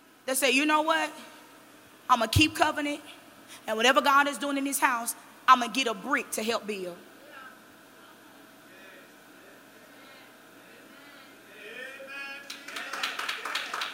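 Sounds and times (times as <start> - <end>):
speech: 0.3 - 1.4, 2.1 - 7.1
few hand claps: 12.4 - 13.9.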